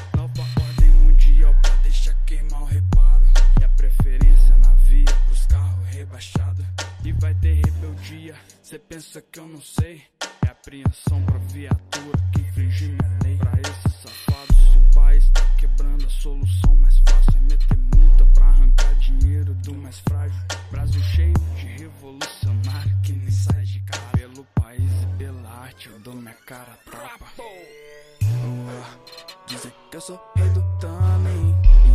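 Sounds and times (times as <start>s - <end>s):
dub bass: 0.0s - 8.3s, 11.1s - 25.6s, 28.2s - 28.8s, 30.4s - 31.9s.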